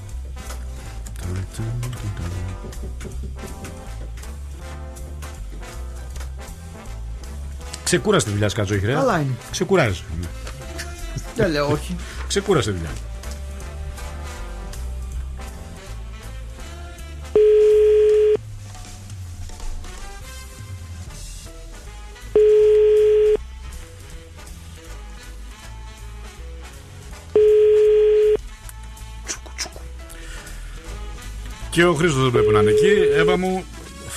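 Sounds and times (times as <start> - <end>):
busy music: 0.0 - 34.1
speech: 1.3 - 5.8, 7.9 - 10.4, 11.4 - 13.1, 31.8 - 33.8
telephone ringing tone: 17.4 - 18.4, 22.4 - 23.4, 27.4 - 28.4, 32.4 - 33.4.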